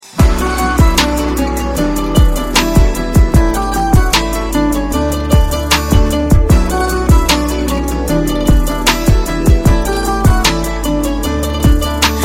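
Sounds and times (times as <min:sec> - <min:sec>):
instrumental ringtone music: 0:00.2 - 0:12.2.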